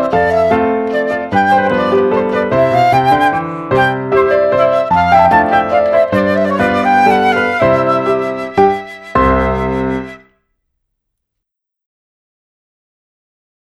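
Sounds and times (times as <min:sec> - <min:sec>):
flute: 0:00.0 - 0:10.3
piano: 0:00.0 - 0:10.3.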